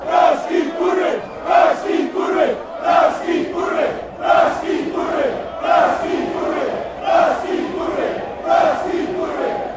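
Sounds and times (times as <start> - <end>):
fans chanting: 0.0 - 9.7.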